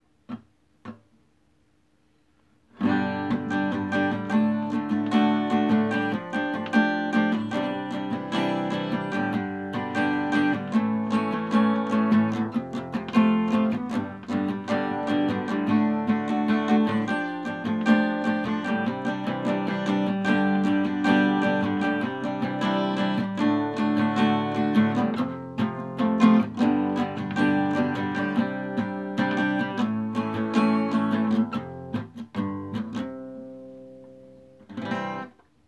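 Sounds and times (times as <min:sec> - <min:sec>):
acoustic music: 0:02.7 - 0:35.4.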